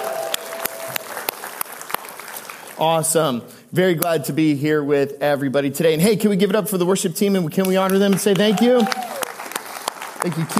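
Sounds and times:
church audience applauding and cheering: 0.0s - 3.2s, 7.6s - 10.5s
speech: 2.8s - 9.1s, 10.2s - 10.5s.

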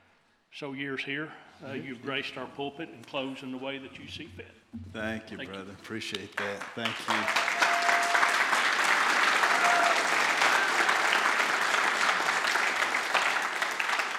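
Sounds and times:
speech: 0.6s - 7.6s
audience applause: 6.4s - 14.1s.

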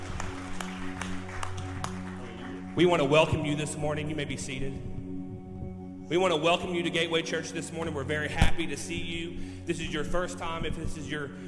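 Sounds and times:
crowd clapping in rhythm: 0.0s - 3.5s
speech: 2.8s - 5.0s, 6.1s - 11.4s.

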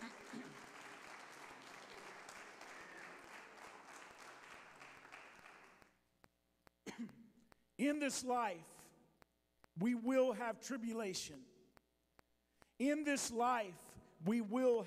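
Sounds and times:
audience hand clapping: 0.0s - 6.0s
speech: 7.8s - 8.8s, 9.8s - 11.5s, 12.8s - 14.8s.

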